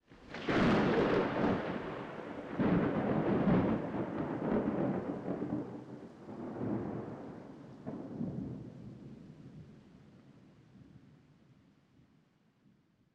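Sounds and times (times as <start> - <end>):
thunder: 0.2 - 9.8.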